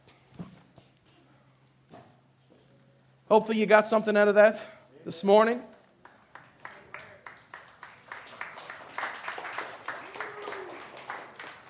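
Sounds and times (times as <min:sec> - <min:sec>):
speech: 0:03.3 - 0:05.7
audience hand clapping: 0:06.0 - 0:11.6.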